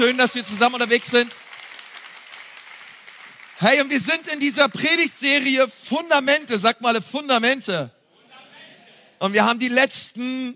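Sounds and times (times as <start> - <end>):
speech: 0.0 - 1.5, 3.6 - 8.0, 9.2 - 10.5
crowd applauding: 0.0 - 4.3.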